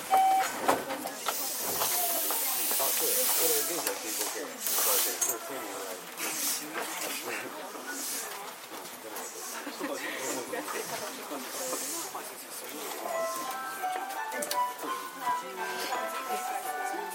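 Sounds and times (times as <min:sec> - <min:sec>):
passengers talking on JR 323 series train: 0:00.5 - 0:17.1
JR 323 series train interior hissing at Momodani: 0:01.3 - 0:05.2.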